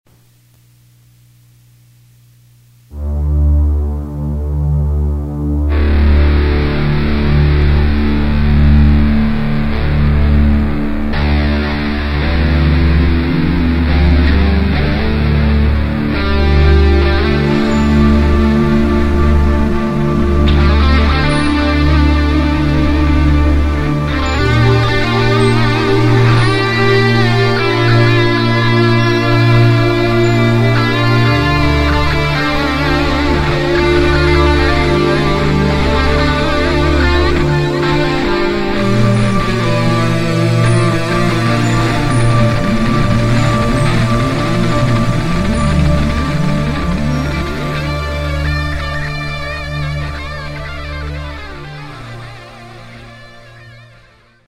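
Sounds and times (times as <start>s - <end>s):
guitar intro: 2.9s - 54.4s.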